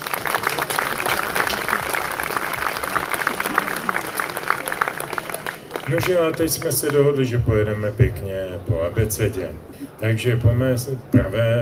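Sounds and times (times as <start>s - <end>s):
audience applause: 0.0s - 7.3s
speech: 5.9s - 11.6s.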